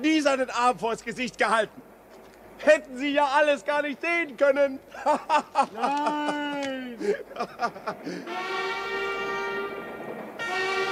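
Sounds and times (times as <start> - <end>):
speech: 0.3 - 1.8, 2.6 - 8.8
laughter: 4.9 - 8.3
approaching train: 7.4 - 10.8.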